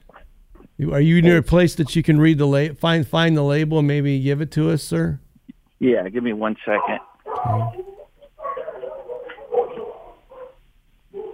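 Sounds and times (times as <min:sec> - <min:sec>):
speech: 0:00.8 - 0:05.2, 0:05.8 - 0:07.9
excited dogs barking and yelping over a phone line: 0:07.2 - 0:11.3.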